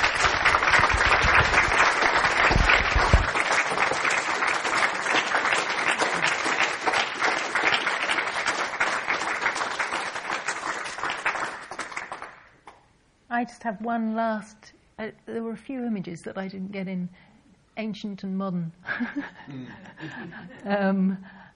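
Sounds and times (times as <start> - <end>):
audience applause after a presentation: 0.0 - 12.8
speech: 13.6 - 17.2, 17.8 - 21.4
laughter: 18.9 - 20.7.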